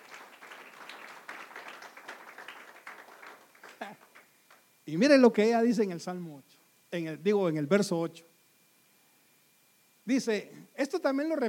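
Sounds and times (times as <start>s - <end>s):
audience applause: 0.0s - 4.6s
speech: 4.9s - 8.3s, 10.1s - 11.4s.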